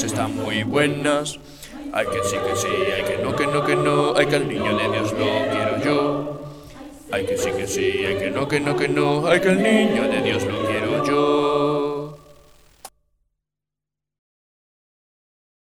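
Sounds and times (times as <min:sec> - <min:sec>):
Christmas song: 0:00.0 - 0:12.2.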